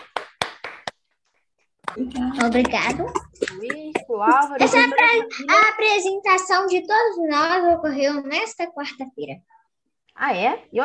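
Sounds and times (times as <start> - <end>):
sharp hand claps: 0.0 - 1.1, 1.8 - 4.6
laughter: 2.0 - 5.8
speech: 2.0 - 9.6, 10.2 - 10.8.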